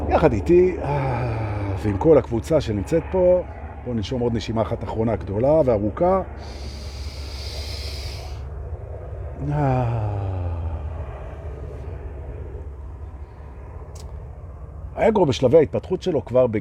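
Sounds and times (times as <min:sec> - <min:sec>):
helicopter: 0:00.0 - 0:16.5
speech: 0:00.1 - 0:01.2, 0:01.8 - 0:06.8, 0:09.4 - 0:10.1, 0:15.0 - 0:16.5.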